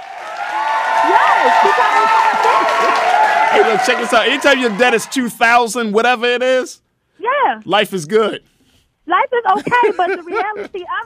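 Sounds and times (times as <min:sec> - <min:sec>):
voices whooping and calling out: 0:00.0 - 0:05.7
audience applause: 0:00.0 - 0:06.6
laughter: 0:01.0 - 0:05.2, 0:09.5 - 0:11.0
speech: 0:03.5 - 0:06.8, 0:07.5 - 0:08.5, 0:09.1 - 0:11.0.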